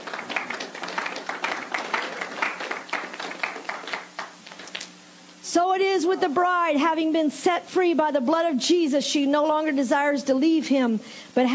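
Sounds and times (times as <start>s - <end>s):
audience hand clapping: 0.0s - 4.9s
speech: 5.5s - 11.5s.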